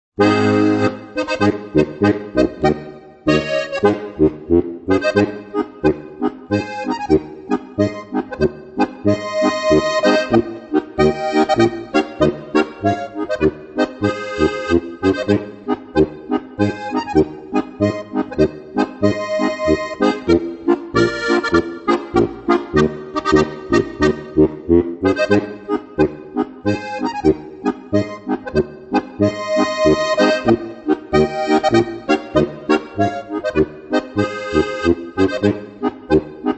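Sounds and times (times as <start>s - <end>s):
march music: 0.2s - 6.2s, 7.0s - 25.8s, 26.7s - 35.8s.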